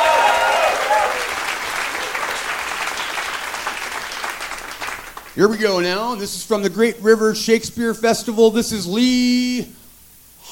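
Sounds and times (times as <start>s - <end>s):
audience applause: 0.0s - 5.4s
speech: 5.4s - 9.8s.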